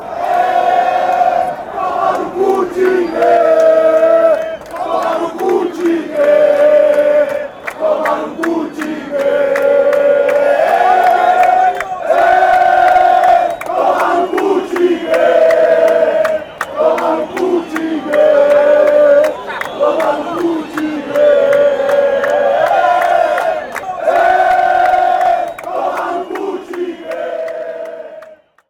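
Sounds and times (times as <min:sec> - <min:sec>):
football crowd chanting in Sao Paulo: 0:00.0 - 0:28.6.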